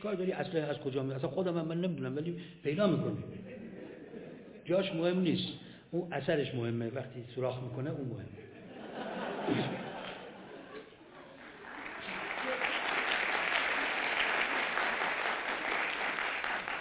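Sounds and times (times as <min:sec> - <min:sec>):
speech: 0:00.0 - 0:03.6, 0:04.7 - 0:09.9
laughter: 0:03.4 - 0:04.7, 0:08.4 - 0:13.0
audience clapping for Imam Khomeini: 0:10.0 - 0:16.8.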